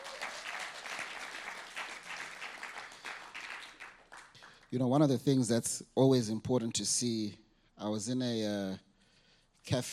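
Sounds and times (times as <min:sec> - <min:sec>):
audience applauding for a pastor: 0:00.0 - 0:04.6
speech: 0:04.7 - 0:08.9, 0:09.6 - 0:09.9.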